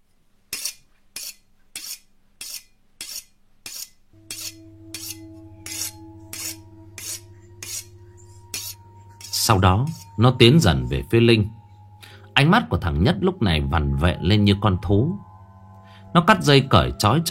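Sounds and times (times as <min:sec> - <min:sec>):
butcher knife being sharpened against a table edge: 0:00.5 - 0:10.2
low droning tone: 0:04.2 - 0:17.2
speech: 0:09.5 - 0:11.6, 0:12.4 - 0:15.3, 0:16.1 - 0:17.2.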